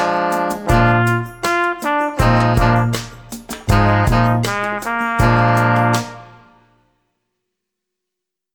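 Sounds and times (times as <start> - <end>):
trumpet solo: 0.0 - 6.8.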